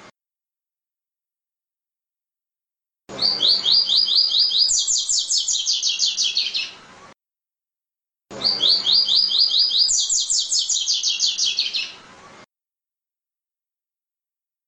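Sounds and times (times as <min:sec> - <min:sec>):
double-collared seedeater song: 0:03.1 - 0:06.9, 0:08.3 - 0:12.2.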